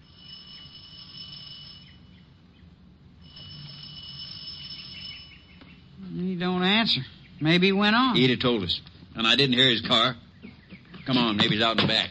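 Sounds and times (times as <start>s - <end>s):
doorbell ringing: 0.0s - 2.1s, 3.2s - 5.6s
speech: 6.4s - 10.2s, 11.1s - 12.0s.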